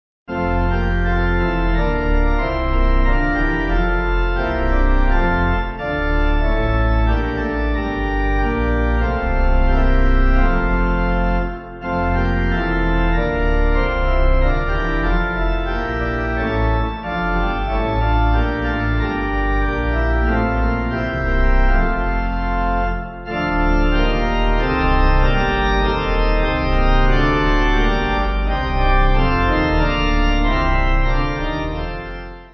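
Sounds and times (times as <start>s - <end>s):
pipe organ: 0.3s - 32.5s.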